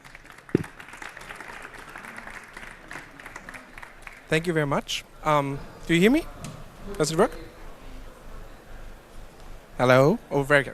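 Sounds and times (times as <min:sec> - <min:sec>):
audience applause: 0:00.0 - 0:04.3
speech: 0:04.3 - 0:07.5, 0:09.8 - 0:10.7.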